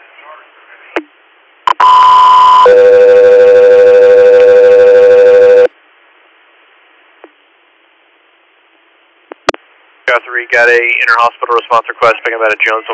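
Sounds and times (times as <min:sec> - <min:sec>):
radio dispatch alert tones: 0:01.7 - 0:05.7
speech: 0:10.1 - 0:12.9.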